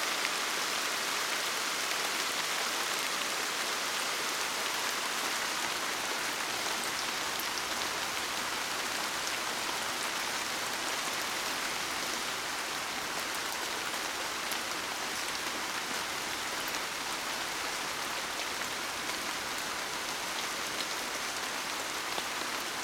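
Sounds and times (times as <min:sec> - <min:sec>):
rain: 0:00.0 - 0:22.8.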